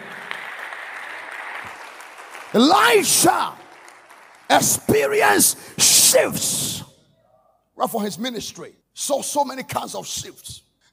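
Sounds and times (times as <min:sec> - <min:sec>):
crowd clapping: 0:00.0 - 0:05.6
speech: 0:02.5 - 0:03.6, 0:04.5 - 0:06.9, 0:07.8 - 0:10.7.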